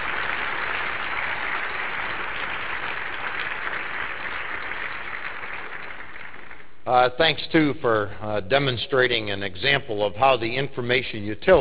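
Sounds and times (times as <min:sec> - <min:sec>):
audience applause: 0:00.0 - 0:06.7
speech: 0:06.9 - 0:11.5.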